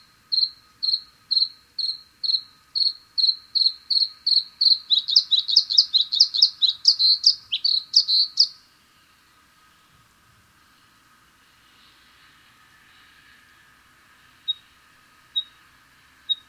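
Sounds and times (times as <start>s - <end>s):
Bluethroat Luscinia svecica singing: 3.2s - 8.6s.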